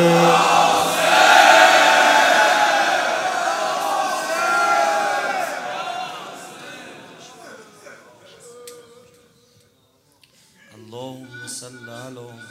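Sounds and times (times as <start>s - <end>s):
crowd shouting in unison: 0.0s - 8.2s.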